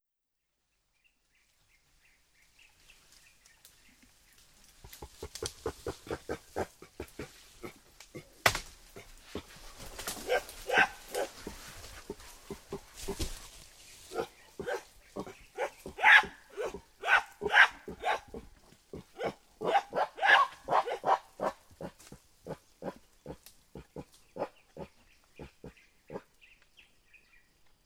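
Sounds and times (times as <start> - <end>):
mountain gorilla giving uuk grunts: 4.8 - 13.5, 14.1 - 26.3.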